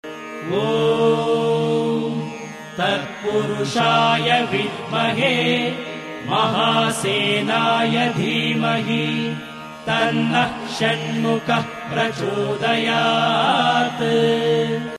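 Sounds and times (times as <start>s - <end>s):
person chanting a Hindu mantra: 0.4s - 14.9s.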